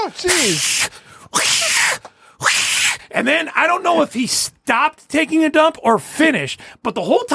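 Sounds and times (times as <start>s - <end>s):
speech: 0.0s - 7.3s
person imitating a cat hissing: 0.2s - 3.0s.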